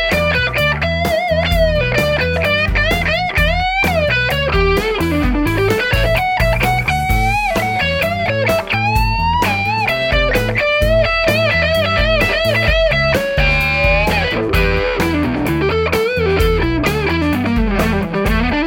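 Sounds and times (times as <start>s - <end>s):
classic high-gain electric guitar on neck humbucker pickup: 0.0s - 18.6s.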